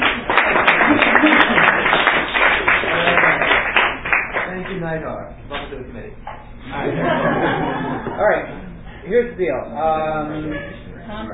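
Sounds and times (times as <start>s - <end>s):
group applause: 0.0s - 4.9s
laughter: 0.6s - 2.1s, 6.7s - 8.8s, 10.2s - 11.3s
speech: 9.1s - 11.3s.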